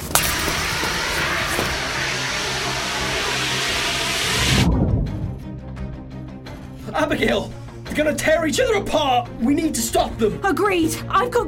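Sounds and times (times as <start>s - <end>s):
fire extinguisher spraying: 0.0s - 4.6s
low rumble: 0.0s - 6.4s
speech: 7.0s - 11.4s.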